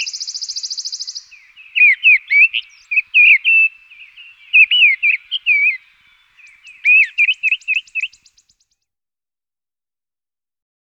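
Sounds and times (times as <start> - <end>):
mistle thrush singing: 0.0 - 8.6.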